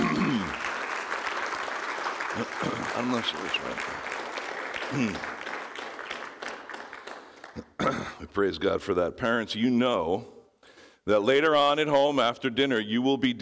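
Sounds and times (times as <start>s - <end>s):
audience applause: 0.0s - 7.8s
speech: 2.4s - 4.2s, 4.9s - 5.4s, 7.6s - 10.4s, 11.1s - 13.3s.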